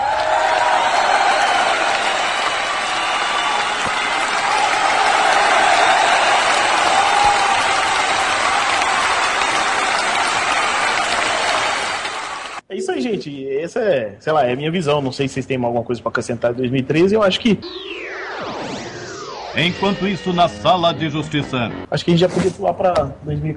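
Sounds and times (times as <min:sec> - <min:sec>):
applause: 0:00.0 - 0:12.6
speech: 0:13.2 - 0:18.0, 0:19.6 - 0:23.5.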